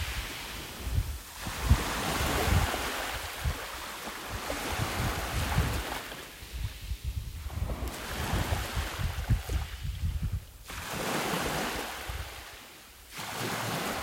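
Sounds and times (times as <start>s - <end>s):
low wind buffeting thumps: 0.0s - 3.6s, 4.3s - 10.6s
wind blowing over waves: 0.0s - 12.6s
waves washing in and out: 0.0s - 14.0s.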